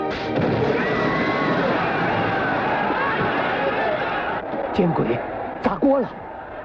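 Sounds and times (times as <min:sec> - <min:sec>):
explosion sound effect: 0:00.1 - 0:03.4
speech: 0:04.8 - 0:06.2.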